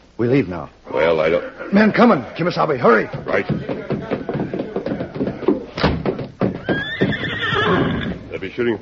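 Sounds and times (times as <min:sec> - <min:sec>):
speech: 0:00.2 - 0:03.9, 0:08.6 - 0:08.8
clattering and thumping: 0:03.1 - 0:08.0
horse whinnying: 0:06.6 - 0:08.3.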